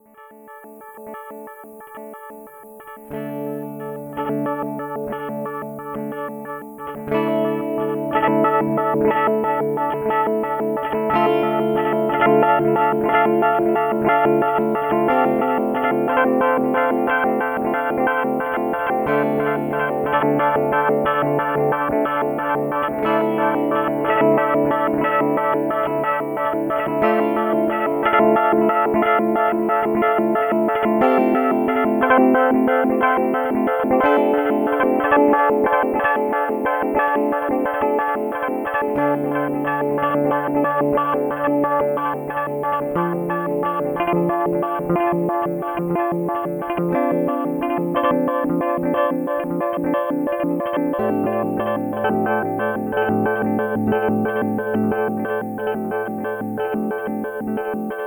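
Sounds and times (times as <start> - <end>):
Alexander Pedals Radical Delay arpeggio: 0.3 - 58.0.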